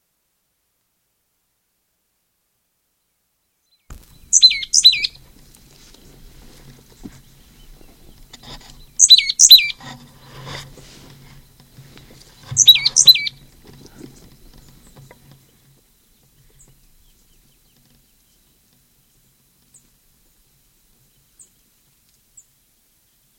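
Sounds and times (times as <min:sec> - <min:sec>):
bird call with slightly melodic notes: 0:03.9 - 0:05.2, 0:08.8 - 0:09.8, 0:12.5 - 0:13.4.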